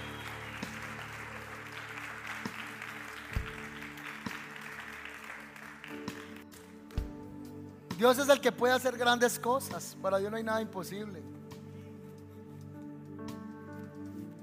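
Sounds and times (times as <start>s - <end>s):
audience applause: 0.0s - 6.8s
speech: 8.0s - 11.3s.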